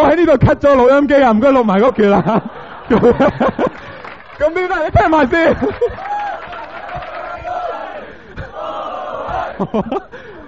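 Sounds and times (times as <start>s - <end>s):
speech: 0.1s - 6.2s, 9.6s - 10.3s
laughter: 2.0s - 10.4s
large audience clapping and cheering: 3.4s - 9.6s
shouts and whoops: 5.8s - 9.6s.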